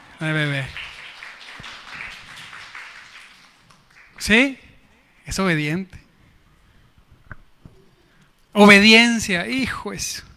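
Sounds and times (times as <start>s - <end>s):
applause: 0.0s - 4.6s
speech: 0.2s - 0.8s, 4.2s - 4.6s, 5.3s - 6.0s, 8.5s - 10.3s.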